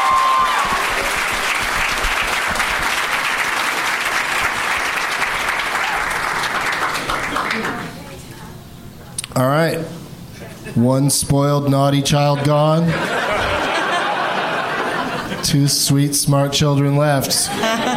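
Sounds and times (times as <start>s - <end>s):
game show audience applause for a departing contestant: 0.0s - 7.9s
speech: 9.4s - 10.0s, 10.8s - 13.2s, 15.4s - 17.9s
laughter: 12.1s - 15.7s, 17.2s - 17.9s.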